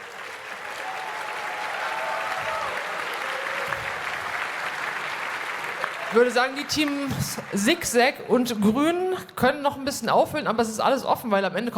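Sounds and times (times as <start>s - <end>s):
crowd applause: 0.0s - 8.2s
speech: 6.1s - 11.7s.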